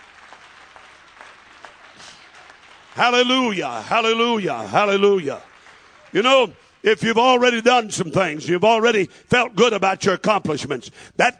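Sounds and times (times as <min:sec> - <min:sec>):
crowd clatter: 0:00.0 - 0:06.7
rhythmic audience clapping: 0:00.0 - 0:08.8
speech: 0:03.0 - 0:05.5, 0:06.1 - 0:11.3.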